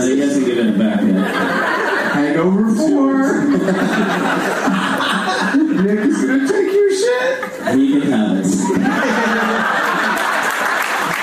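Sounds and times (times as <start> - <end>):
speech: 0.6 - 1.6, 2.4 - 4.8
comedy show audience chuckles and laughter: 0.8 - 11.2
comedy show audience applauding: 9.0 - 11.2.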